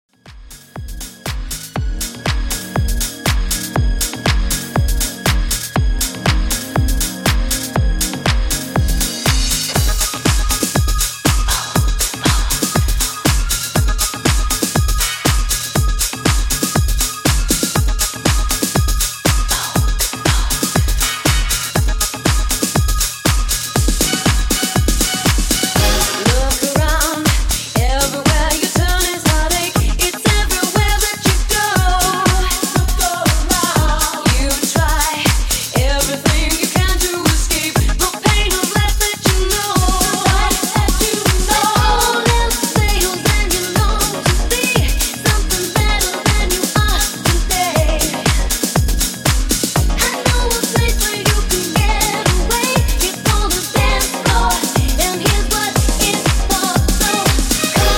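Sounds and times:
classic clean music loop: 0.3s - 57.9s.

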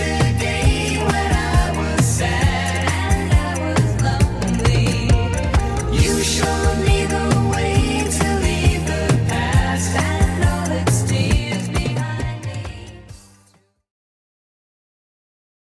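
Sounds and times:
70s drum machine beat at 135 bpm: 0.0s - 13.4s.

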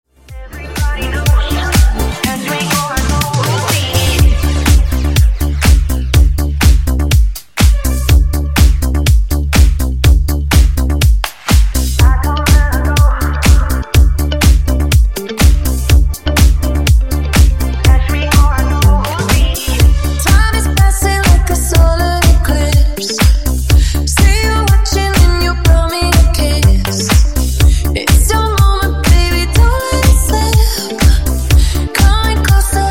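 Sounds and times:
funk music: 0.1s - 32.8s.

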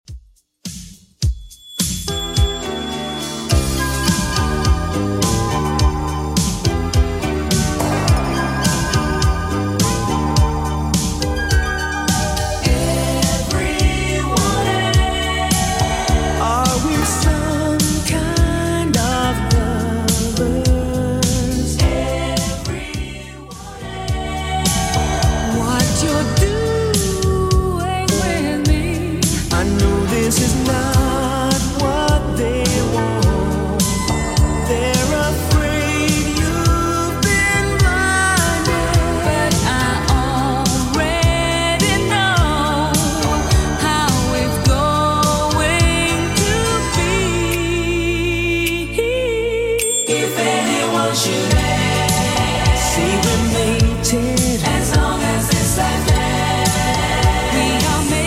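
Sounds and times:
80s style music at 105 BPM: 0.6s - 58.2s.

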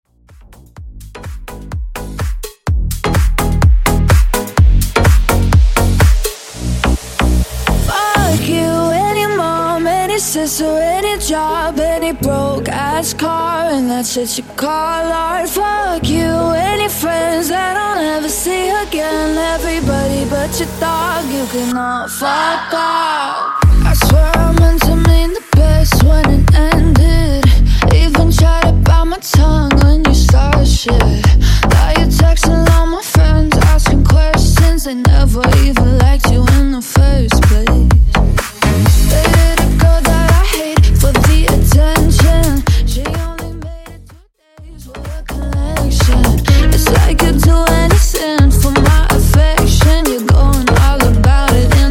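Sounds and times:
Top 40 slap house mashup music: 0.1s - 51.9s.

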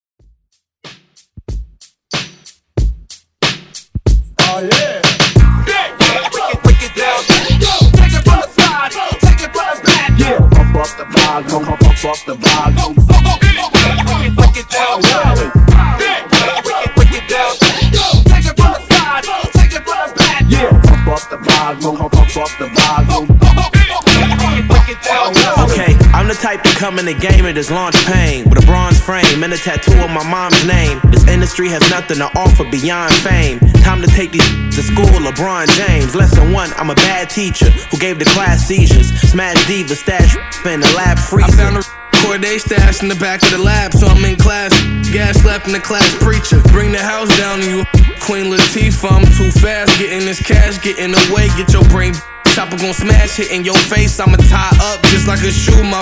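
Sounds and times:
hype music: 0.8s - 56.0s.

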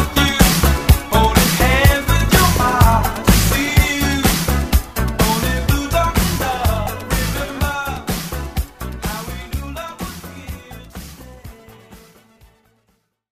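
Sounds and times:
1970s-style drum beat: 0.1s - 9.4s.

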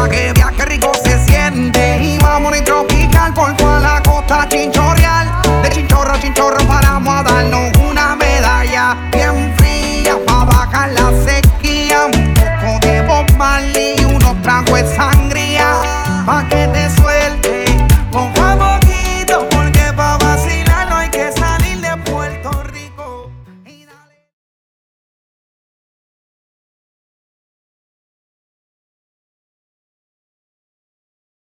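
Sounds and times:
extended Latin music: 0.0s - 24.0s.

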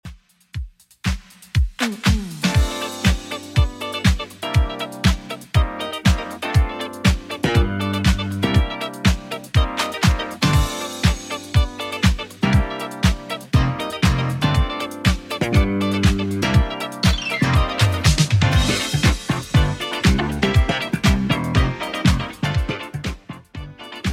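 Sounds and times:
80s Redrum drum machine beat at 120 bpm: 0.0s - 24.1s.

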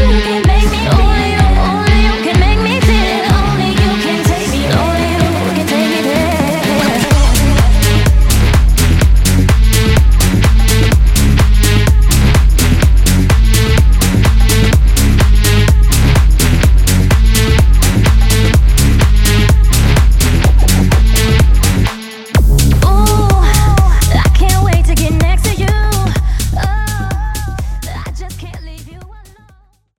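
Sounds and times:
dance drum beat: 0.0s - 29.6s.

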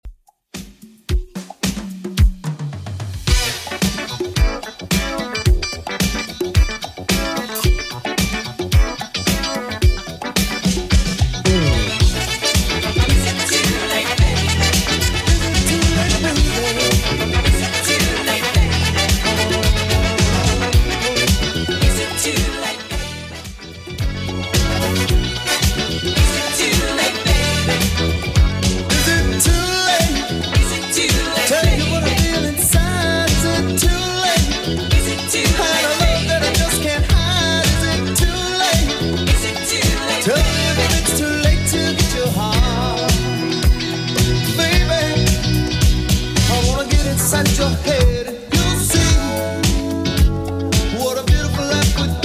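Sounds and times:
80s-style beat at 110 bpm: 0.0s - 52.2s.

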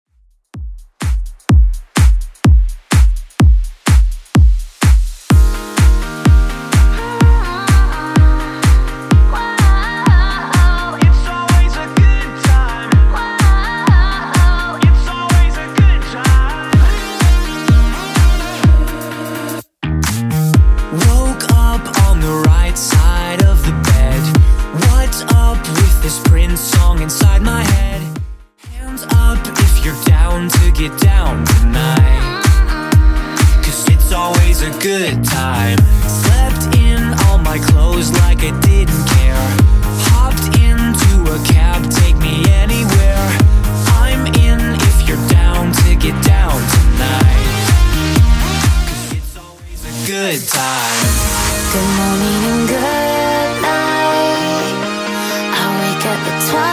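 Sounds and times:
Top 40 pop music at 126 BPM: 1.0s - 56.7s.

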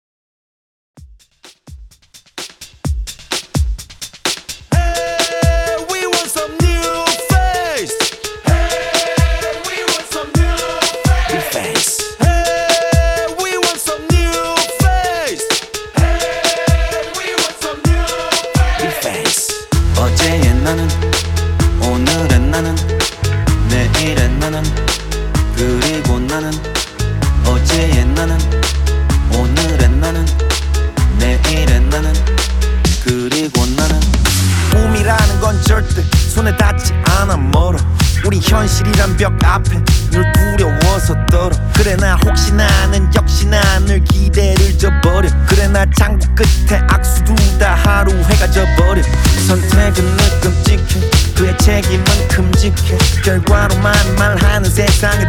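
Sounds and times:
drum beat: 1.0s - 55.2s.

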